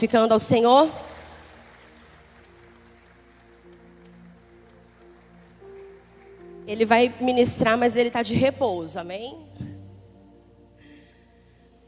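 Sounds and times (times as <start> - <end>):
speech: 0.0 - 1.1, 6.7 - 9.6
sustained low musical tones droning: 0.0 - 11.8
audience applauding: 0.8 - 6.7.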